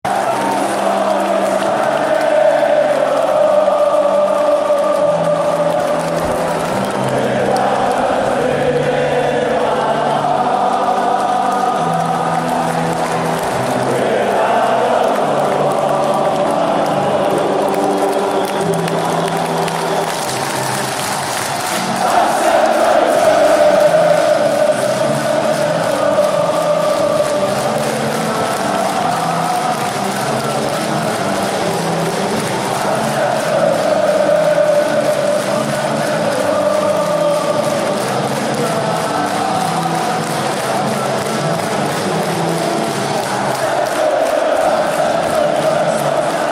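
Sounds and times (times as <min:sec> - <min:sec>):
music: 0:00.0 - 0:46.4.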